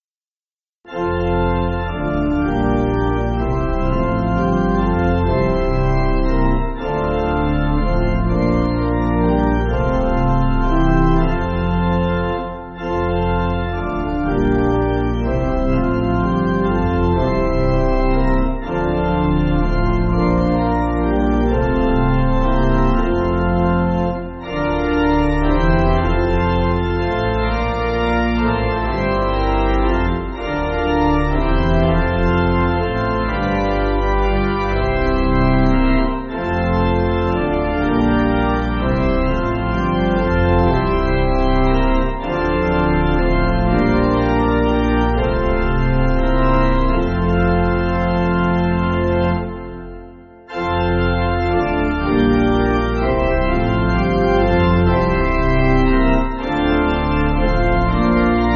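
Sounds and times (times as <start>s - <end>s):
pipe organ playing: 0.9s - 58.5s.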